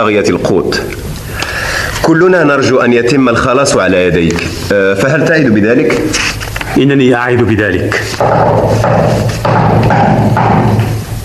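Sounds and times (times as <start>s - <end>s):
speech: 0.0s - 1.2s, 2.0s - 10.9s
steady hiss: 0.0s - 11.2s
agreed-upon patterned knocking on a door: 8.2s - 11.0s.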